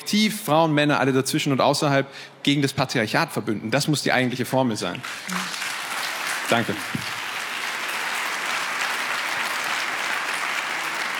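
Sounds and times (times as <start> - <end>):
speech: 0.1 - 5.6, 6.5 - 7.2
audience applause: 5.0 - 11.1.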